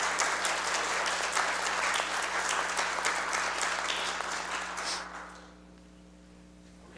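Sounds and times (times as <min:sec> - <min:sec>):
church congregation clapping to welcome a new bass choral scholar: 0:00.0 - 0:05.6.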